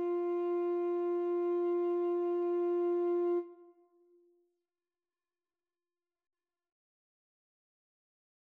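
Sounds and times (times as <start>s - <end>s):
alto and tenor saxophone duet: 0.0s - 3.7s.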